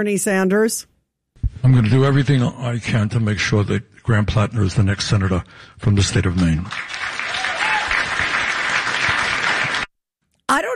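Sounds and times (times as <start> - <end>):
speech: 0.0 - 0.9, 1.6 - 7.1
crowd clapping: 6.0 - 9.9.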